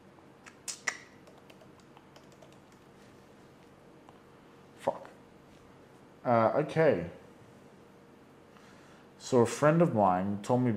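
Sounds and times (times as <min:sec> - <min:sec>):
keyboard keys clicking typing a place name into a geography guessing game: 0:01.2 - 0:02.8
speech: 0:06.2 - 0:07.2, 0:09.3 - 0:10.7.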